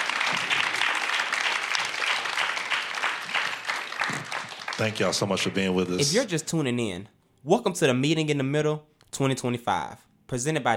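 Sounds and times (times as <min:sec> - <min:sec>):
audience clapping: 0:00.0 - 0:06.1
speech: 0:04.8 - 0:10.7.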